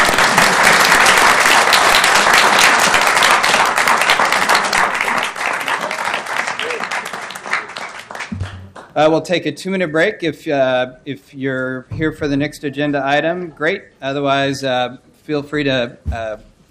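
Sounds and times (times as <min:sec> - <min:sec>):
audience clapping: 0:00.0 - 0:09.0
speech: 0:09.0 - 0:16.5.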